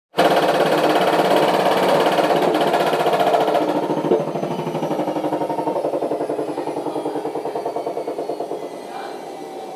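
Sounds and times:
washing machine dying: 0.2 - 9.7.

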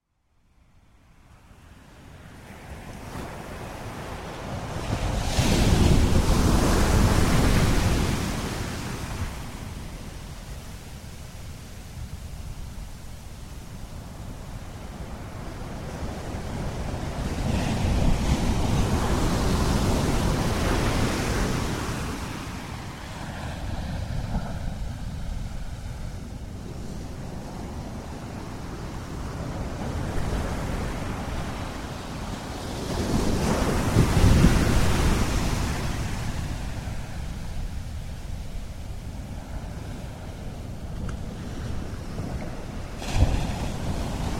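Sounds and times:
ocean waves at dawn in Tangalle: 0.9 - 44.3.

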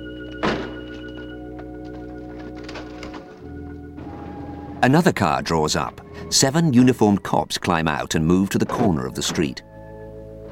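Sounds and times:
heavy metal security gate sliding shut: 0.2 - 5.1, 8.4 - 9.8
speech: 4.8 - 9.7.

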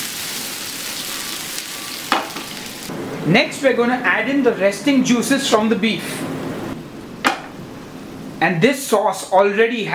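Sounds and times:
hot pan sizzling as water deglazes it: 0.0 - 3.2
speech: 3.2 - 6.4, 8.4 - 9.9.

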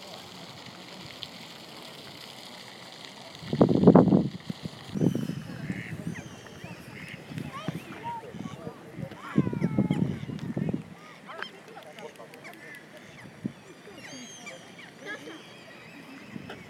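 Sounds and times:
birds calling: 5.0 - 16.6.

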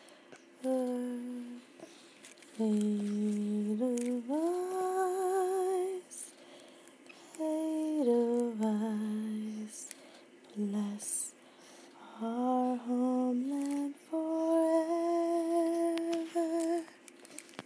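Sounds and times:
person singing to sleep: 0.6 - 1.7, 2.6 - 6.3, 7.3 - 11.4, 12.0 - 17.0.

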